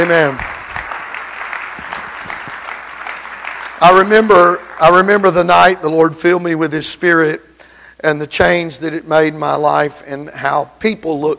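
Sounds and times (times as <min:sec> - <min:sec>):
speech: 0:00.0 - 0:00.5, 0:03.8 - 0:11.3
audience clapping: 0:00.0 - 0:05.3.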